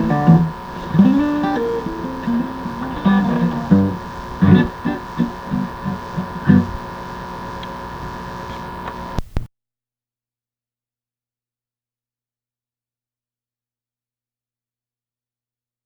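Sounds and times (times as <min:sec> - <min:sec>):
blues music: 0:00.0 - 0:09.5.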